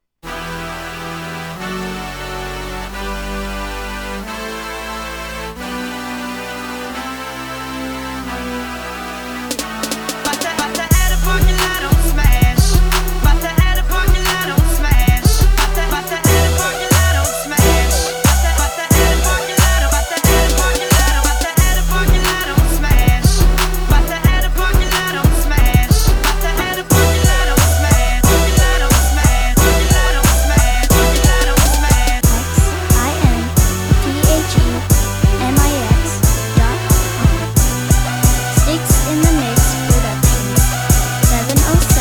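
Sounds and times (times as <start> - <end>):
drum beats: 9.5 - 41.9.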